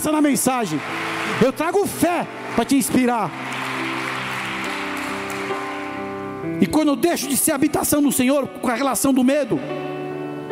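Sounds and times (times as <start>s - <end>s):
speech: 0.0s - 3.4s, 6.6s - 10.0s
audience applause: 0.0s - 6.4s.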